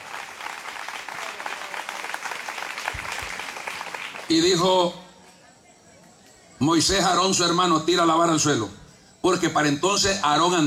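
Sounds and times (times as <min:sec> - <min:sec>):
audience applauding: 0:00.0 - 0:04.6
speech: 0:04.3 - 0:05.0, 0:06.6 - 0:10.6.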